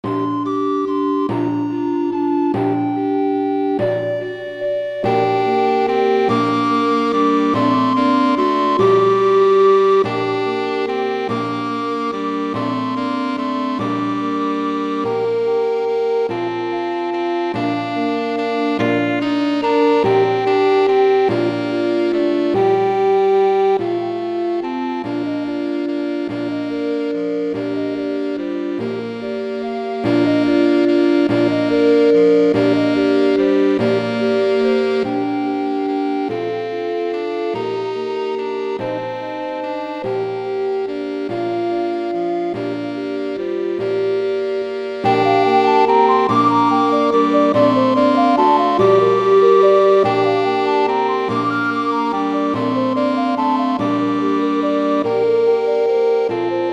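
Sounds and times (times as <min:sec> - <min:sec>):
saxophone melody: 0:00.0 - 0:56.7.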